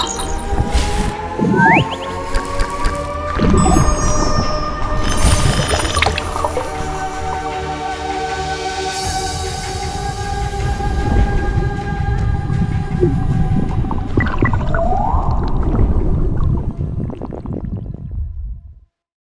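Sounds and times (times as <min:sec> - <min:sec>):
ocean: 0:00.0 - 0:17.8.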